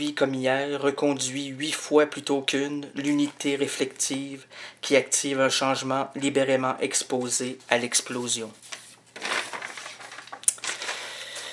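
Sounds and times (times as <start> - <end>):
speech: 0.0 - 9.3
crumpling sheets of paper: 7.2 - 11.5.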